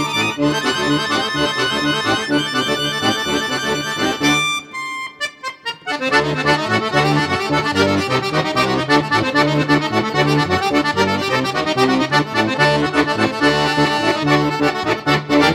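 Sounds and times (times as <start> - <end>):
accordion trio playing: 0.0 - 15.5.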